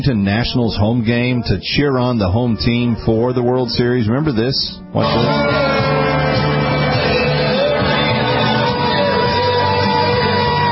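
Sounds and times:
speech: 0.0s - 6.6s
crowd booing: 5.0s - 10.7s.

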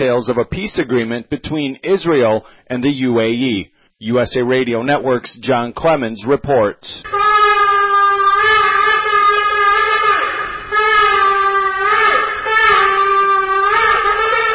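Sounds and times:
speech: 0.0s - 7.2s
shofar ram's horn being blown: 7.0s - 14.5s.

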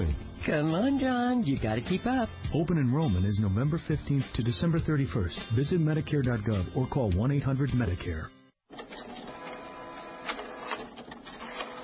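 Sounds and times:
speech: 0.5s - 8.4s
inkjet printer printing: 8.7s - 11.8s.

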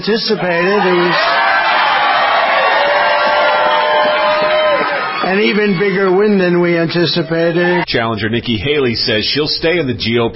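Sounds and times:
speech: 0.0s - 1.5s, 5.3s - 10.3s
crowd of supporters cheering at Donald Trump's South Carolina Republican primary victory speech: 0.3s - 7.9s.

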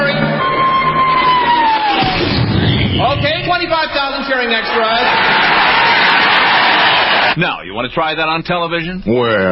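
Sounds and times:
huge crowd of extras cheering: 0.2s - 2.8s, 3.7s - 7.4s
falling whistle-like tone: 0.3s - 3.0s
speech: 7.4s - 9.5s.

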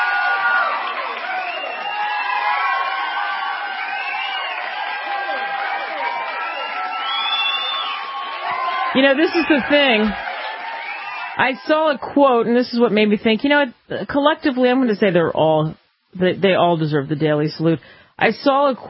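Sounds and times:
live studio audience cheering with whoops, shouts and high voices: 0.0s - 12.1s
speech: 8.9s - 10.2s, 11.4s - 18.8s.

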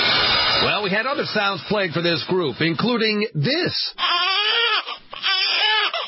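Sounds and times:
speech: 0.6s - 4.2s
infant crying loudly in wailing bursts: 3.9s - 6.0s.

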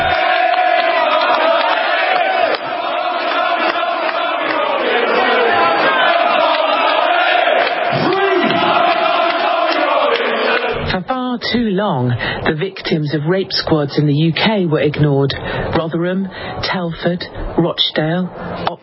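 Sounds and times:
large crowd shouting: 0.0s - 10.8s
speech: 11.5s - 18.7s.

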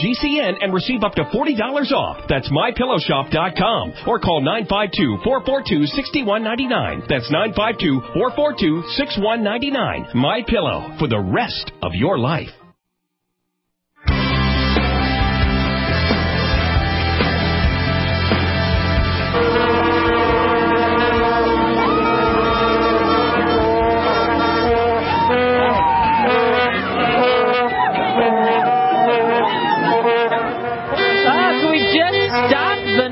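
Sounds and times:
speech: 0.0s - 12.6s
vuvuzela horns blown by World Cup crowd in South Africa: 14.2s - 33.1s.

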